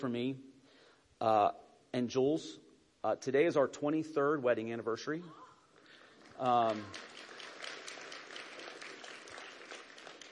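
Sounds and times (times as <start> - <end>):
speech: 0.0 - 0.5, 1.2 - 5.4, 6.4 - 7.1
audience applause: 6.2 - 10.2.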